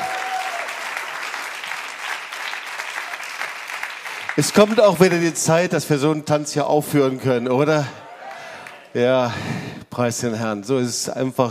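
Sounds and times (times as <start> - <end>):
crowd applauding: 0.0 - 5.4, 7.8 - 9.0
speech: 4.4 - 8.0, 8.9 - 11.4.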